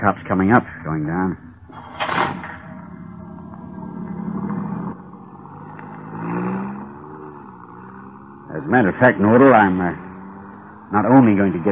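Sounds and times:
speech: 0.0s - 1.5s, 8.6s - 10.0s, 10.9s - 11.7s
car driving off: 0.0s - 11.7s.

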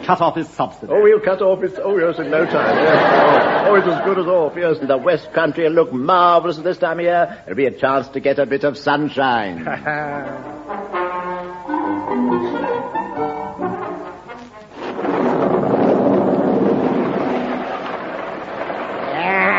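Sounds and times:
speech: 0.1s - 11.0s
laughter: 2.1s - 5.4s, 9.5s - 10.6s
tonal music-like sound: 10.7s - 14.3s
heavy rain: 14.7s - 19.5s.

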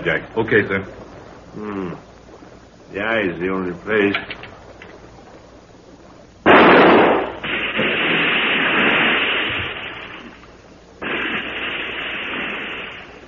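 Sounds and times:
speech: 0.0s - 2.1s, 2.9s - 4.4s
gunshots fired at a creature in a tunnel: 6.5s - 10.0s, 11.0s - 13.2s.

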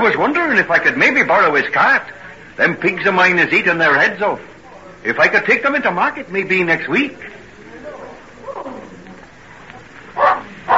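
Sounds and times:
speech: 0.0s - 7.4s
dog barking: 10.2s - 10.7s.

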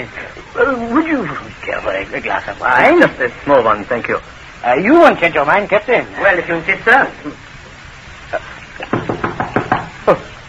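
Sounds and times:
speech: 0.0s - 7.4s, 10.1s - 10.3s
knocking on a door: 8.9s - 10.0s.

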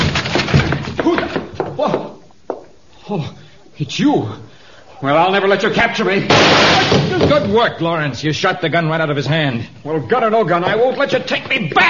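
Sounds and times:
door being forced open: 0.0s - 1.5s, 6.3s - 7.6s
speech: 3.1s - 11.8s.

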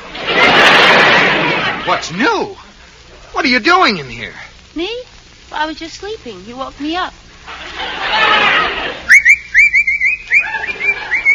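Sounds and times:
laughter: 0.1s - 2.2s, 7.5s - 9.2s, 10.0s - 11.3s
speech: 2.1s - 7.2s
person whistling: 9.1s - 11.3s.

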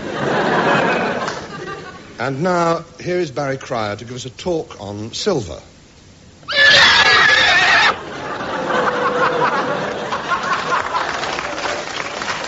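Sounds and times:
laughter: 0.0s - 2.2s, 7.6s - 12.3s
speech: 2.2s - 5.7s
horse neighing: 6.4s - 8.0s.

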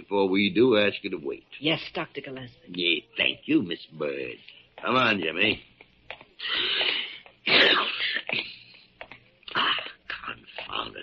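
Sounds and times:
speech: 0.1s - 5.7s, 6.4s - 7.0s
man sneezing: 6.4s - 8.3s.

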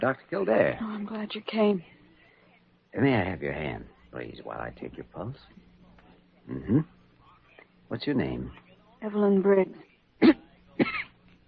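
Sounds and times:
speech: 0.0s - 2.0s, 2.9s - 5.6s, 6.4s - 7.0s, 7.9s - 11.0s
feverish weak patient coughing: 10.2s - 11.1s.

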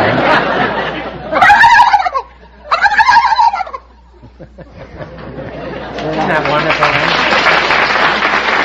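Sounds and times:
laughter: 0.0s - 2.9s, 3.8s - 8.5s
person imitating a turkey gobbler: 1.3s - 3.9s.

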